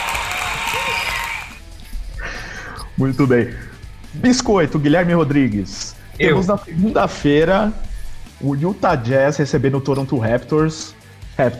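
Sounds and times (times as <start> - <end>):
applause: 0.0 - 1.6
speech: 3.0 - 11.5.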